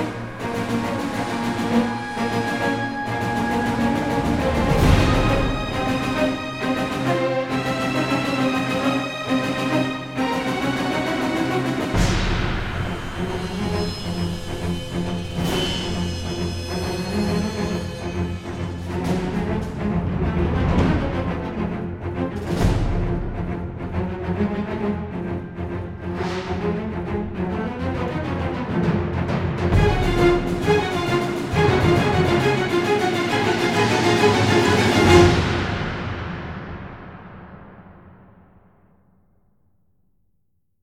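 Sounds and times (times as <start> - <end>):
percussive strings: 0.0 - 38.0.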